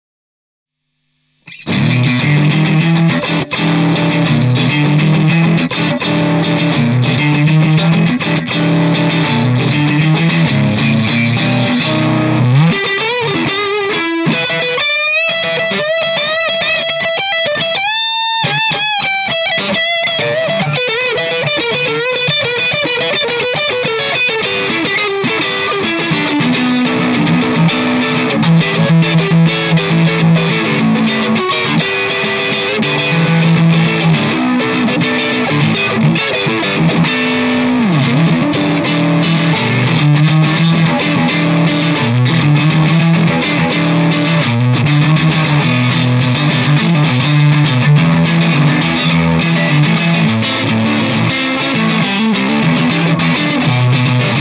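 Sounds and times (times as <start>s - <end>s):
Stratocaster electric guitar with boost: 1.4s - 54.4s.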